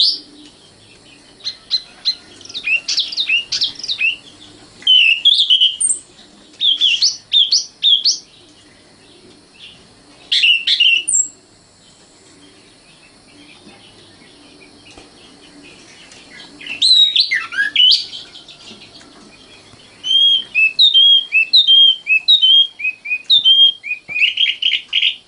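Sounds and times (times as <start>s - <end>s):
Oriental magpie-robin song: 0.0s - 8.3s, 15.6s - 25.2s.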